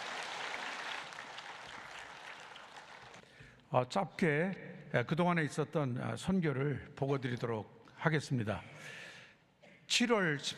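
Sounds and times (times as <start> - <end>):
audience applause: 0.0 - 3.2
speech: 3.7 - 9.0, 9.9 - 10.5.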